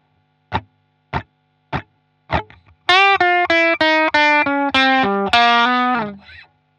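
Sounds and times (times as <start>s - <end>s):
blues guitar: 0.5s - 6.5s.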